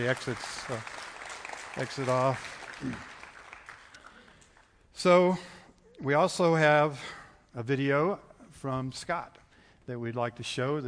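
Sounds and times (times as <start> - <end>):
speech: 0.0 - 1.0, 1.8 - 3.1, 5.0 - 10.8
audience applause: 0.0 - 4.6.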